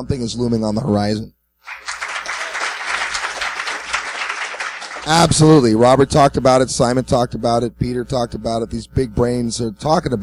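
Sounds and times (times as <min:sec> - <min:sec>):
speech: 0:00.0 - 0:01.8, 0:05.0 - 0:10.2
audience applause: 0:01.6 - 0:05.5.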